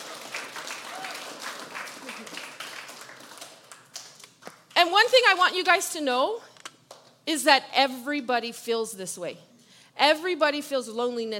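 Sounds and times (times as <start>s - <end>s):
crowd applause: 0.0s - 3.9s
speech: 4.8s - 6.5s, 7.3s - 11.3s.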